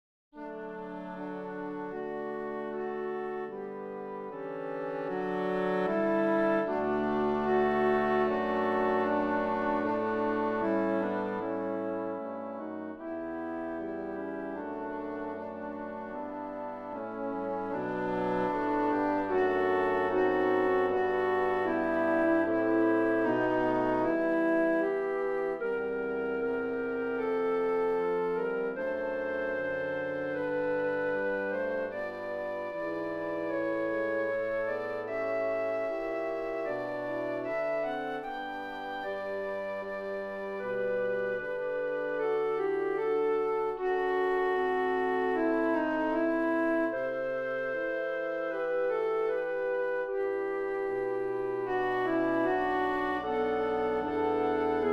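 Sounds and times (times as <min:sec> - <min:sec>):
full ensemble playing: 0:00.4 - 0:54.9.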